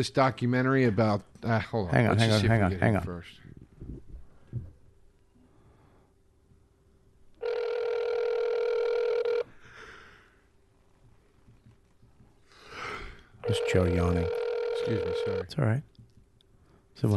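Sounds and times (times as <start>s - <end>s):
speech: 0.0s - 3.4s, 13.5s - 15.9s, 17.0s - 17.1s
outgoing phone call ringback tone: 7.4s - 9.5s, 13.4s - 15.5s.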